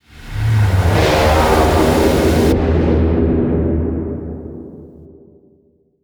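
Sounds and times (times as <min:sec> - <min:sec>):
fly-by one shot: 0:00.1 - 0:03.3.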